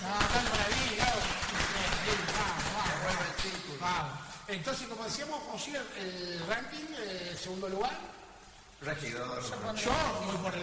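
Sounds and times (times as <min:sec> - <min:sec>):
applause: 0:00.0 - 0:03.8
speech: 0:04.5 - 0:08.2, 0:08.8 - 0:10.6.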